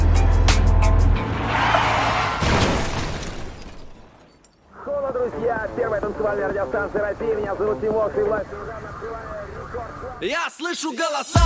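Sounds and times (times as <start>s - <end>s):
car engine roaring under hard acceleration with pedal to the floor: 0.2s - 3.4s
speech: 6.0s - 11.4s.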